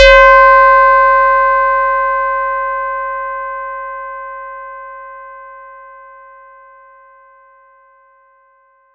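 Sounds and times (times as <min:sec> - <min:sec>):
ringing effect: 0:00.0 - 0:02.9.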